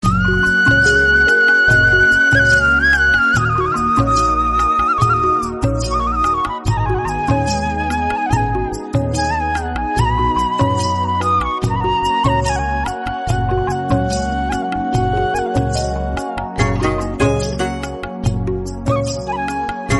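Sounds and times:
village background music: 0.0 - 19.9.

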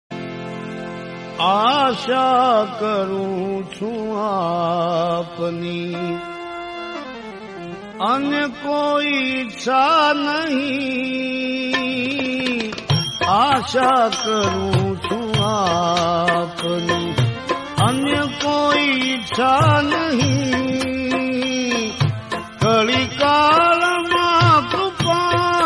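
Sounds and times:
bhajan devotional song: 0.2 - 25.6.

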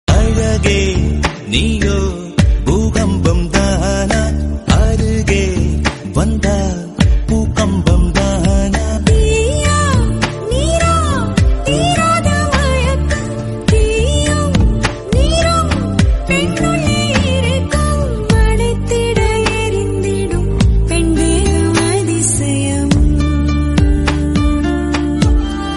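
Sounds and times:
Tamil song: 0.1 - 25.7.

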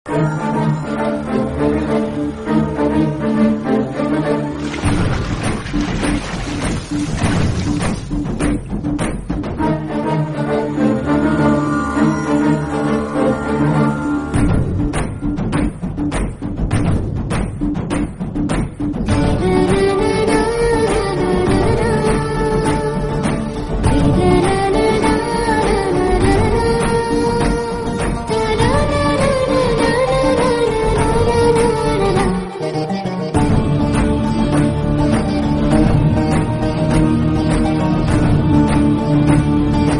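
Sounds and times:
instrumental theme music: 0.1 - 39.9.

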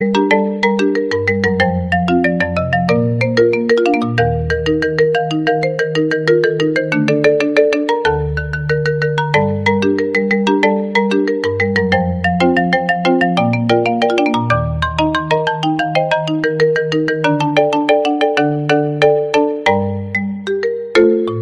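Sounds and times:
marimba background music: 0.0 - 21.4.

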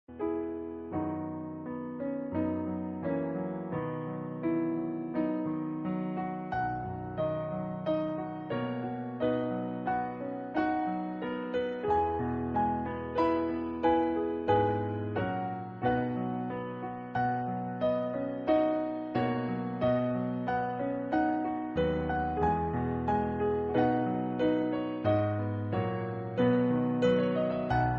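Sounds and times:
instrumental song: 0.1 - 27.9.

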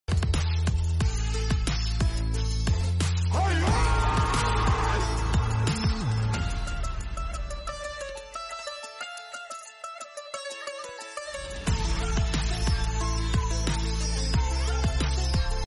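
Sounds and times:
instrumental background music: 0.1 - 15.6.

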